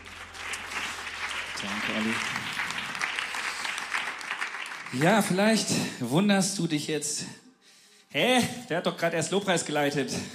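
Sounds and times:
audience applause: 0.0 - 5.9
speech: 1.6 - 2.6, 4.9 - 7.4, 8.1 - 10.3.

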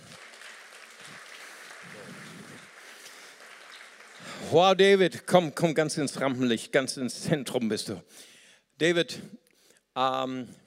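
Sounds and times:
audience applause: 0.0 - 5.0
speech: 4.4 - 9.4, 10.0 - 10.6.

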